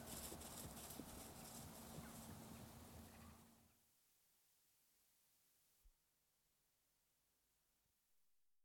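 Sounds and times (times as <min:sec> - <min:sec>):
horse trotting through grass: 0:00.0 - 0:02.8.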